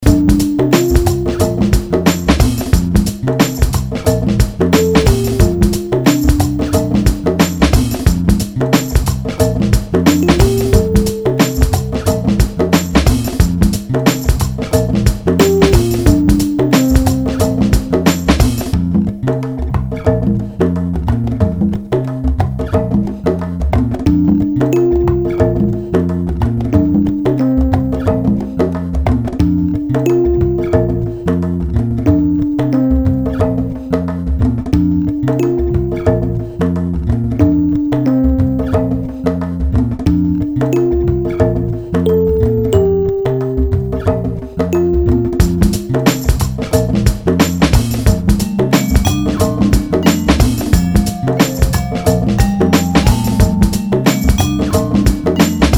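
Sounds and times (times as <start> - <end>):
Latin music: 0.0 - 55.7.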